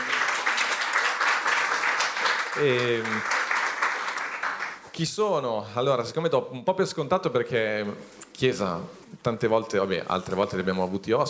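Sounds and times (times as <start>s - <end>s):
crowd applauding: 0.0s - 4.9s
speech: 2.6s - 3.4s, 5.0s - 11.2s.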